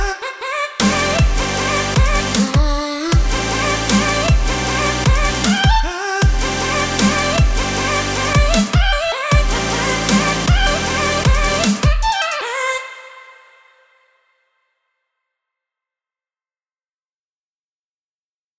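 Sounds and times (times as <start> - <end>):
future bass music rough arrangement: 0.8 - 12.2.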